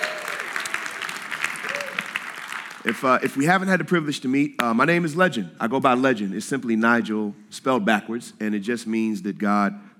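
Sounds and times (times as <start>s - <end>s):
people cheering and whooping: 0.0s - 2.5s
crowd applause: 0.0s - 3.2s
speech: 2.8s - 9.8s.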